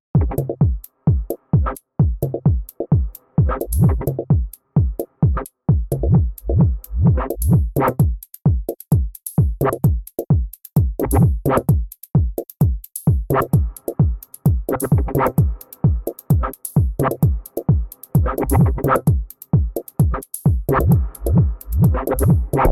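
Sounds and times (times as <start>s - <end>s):
raw electro music: 0.2s - 8.9s, 9.6s - 10.2s, 10.8s - 22.6s.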